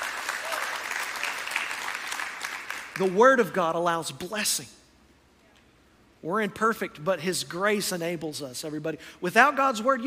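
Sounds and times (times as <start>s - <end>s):
audience clapping: 0.0s - 3.2s
speech: 3.0s - 4.8s, 6.2s - 10.0s.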